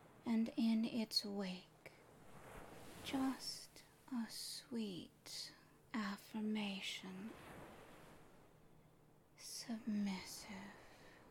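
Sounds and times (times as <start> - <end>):
speech: 0.3 - 1.7, 3.0 - 7.6, 9.4 - 10.8
ocean waves crashing and receding: 2.1 - 3.6, 7.2 - 8.6.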